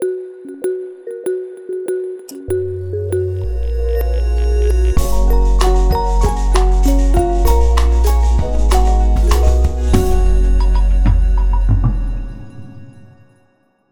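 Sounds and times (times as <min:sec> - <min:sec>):
professional ident music: 0:02.3 - 0:12.5.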